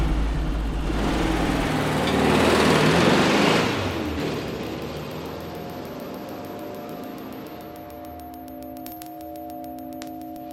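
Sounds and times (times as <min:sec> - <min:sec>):
car engine revving as it drives off fast: 0:00.0 - 0:07.5.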